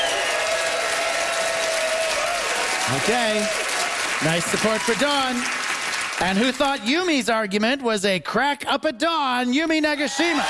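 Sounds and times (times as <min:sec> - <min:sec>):
audience applause as a vote for a contestant: 0:00.0 - 0:07.0, 0:10.2 - 0:10.4
speech: 0:02.9 - 0:05.6, 0:06.2 - 0:10.4.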